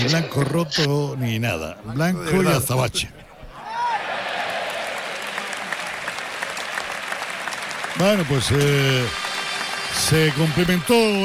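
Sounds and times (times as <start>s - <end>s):
speech: 0.0s - 3.2s, 8.0s - 9.3s, 9.9s - 11.2s
crowd applauding at a bullfight: 3.6s - 11.2s.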